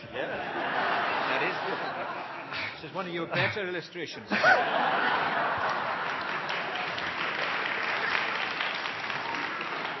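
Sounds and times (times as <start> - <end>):
laughter: 0.0 - 3.4, 4.2 - 7.6
speech: 2.9 - 5.7
audience applause: 4.7 - 9.9.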